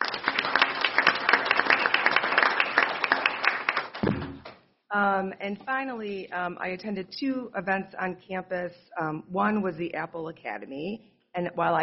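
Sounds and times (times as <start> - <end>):
audience round of applause: 0.0 - 4.1
speech: 5.0 - 11.8.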